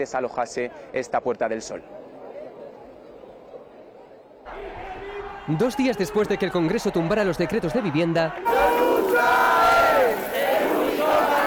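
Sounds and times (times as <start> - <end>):
speech: 0.0 - 2.0, 5.5 - 10.2
protest crowd shouting in anger: 4.5 - 11.4.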